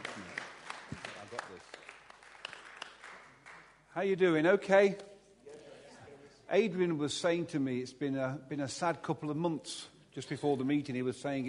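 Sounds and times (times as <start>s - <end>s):
audience applause: 0.0s - 3.7s
speech: 4.0s - 5.1s, 6.5s - 11.4s.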